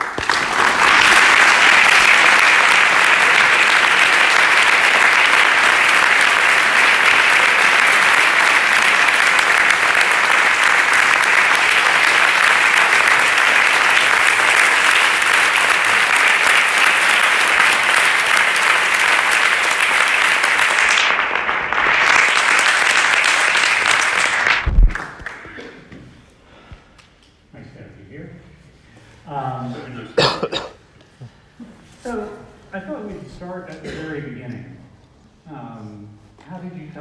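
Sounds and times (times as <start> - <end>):
audience applause welcoming Sir Jony Ive and Rick Tetzeli: 0.0 - 25.7.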